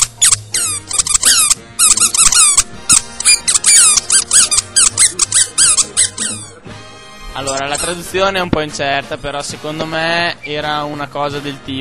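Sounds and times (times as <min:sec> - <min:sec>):
toy trumpet squeak: 0:00.0 - 0:06.6, 0:07.5 - 0:08.0
speech: 0:07.4 - 0:11.8.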